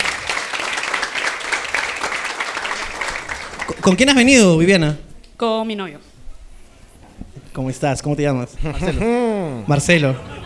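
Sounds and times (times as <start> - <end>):
audience applause: 0.0 - 4.0
speech: 3.8 - 6.1, 7.6 - 10.4
laughter: 8.6 - 10.4.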